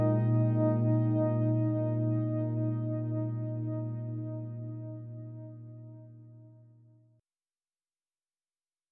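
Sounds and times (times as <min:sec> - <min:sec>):
FM melodic music bed: 0:00.0 - 0:06.5.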